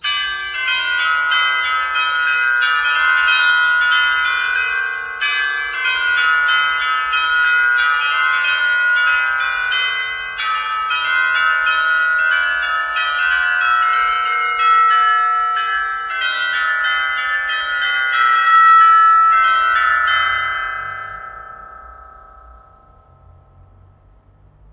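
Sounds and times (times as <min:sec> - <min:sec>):
chime: 0:00.0 - 0:24.0.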